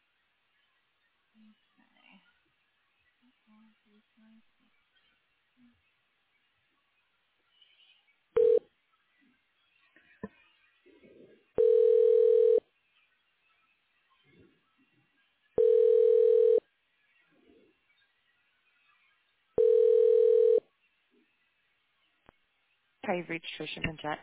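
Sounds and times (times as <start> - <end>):
speech: 1.4 - 2.4, 3.2 - 4.9, 5.6 - 5.9, 23.1 - 24.2
telephone tones while redialing a call: 8.4 - 8.6, 11.6 - 12.6, 15.6 - 16.6, 19.6 - 20.6.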